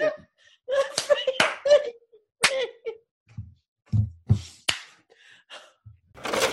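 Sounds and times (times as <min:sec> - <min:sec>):
laughter: 0:00.0 - 0:03.0
hand claps: 0:01.0 - 0:01.8, 0:04.6 - 0:05.0.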